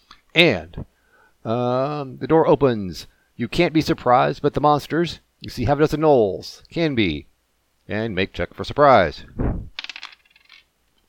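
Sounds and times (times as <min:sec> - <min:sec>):
speech: 0:00.4 - 0:07.3, 0:07.9 - 0:09.6
dice rolling on a hard surface: 0:09.7 - 0:10.7.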